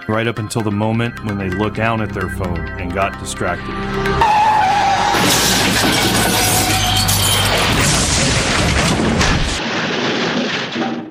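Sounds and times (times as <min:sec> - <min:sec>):
speech: 0:00.1 - 0:04.4, 0:05.2 - 0:06.7
car tires screeching in a long skid: 0:04.0 - 0:07.7
car crash with crunching metal: 0:04.2 - 0:11.1
glass shattering: 0:05.0 - 0:11.1.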